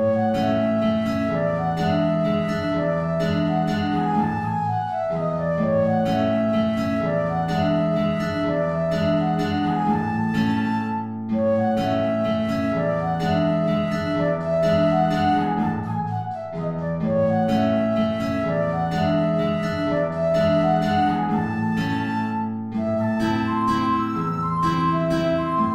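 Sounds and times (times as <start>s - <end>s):
guitar: 0.0s - 25.7s
transverse flute: 0.0s - 25.7s.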